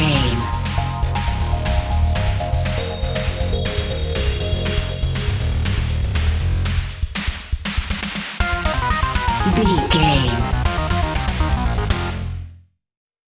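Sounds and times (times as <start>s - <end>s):
intense challenge video game music: 0.0s - 7.0s, 8.4s - 12.6s.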